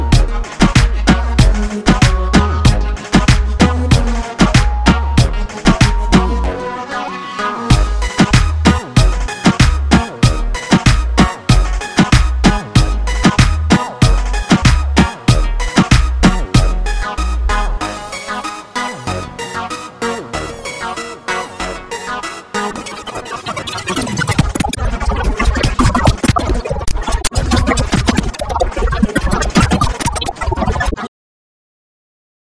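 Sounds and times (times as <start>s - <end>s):
commercial reggaeton backing track: 0.0s - 30.8s.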